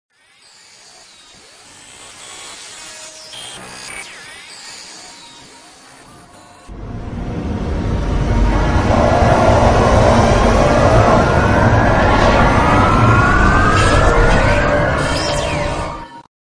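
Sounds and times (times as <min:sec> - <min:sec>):
Alienware computer startup sound: 0:04.9 - 0:16.2.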